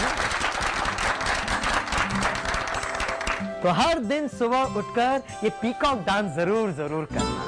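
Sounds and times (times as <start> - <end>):
audience clapping: 0.0 - 3.7
speech: 3.6 - 7.3.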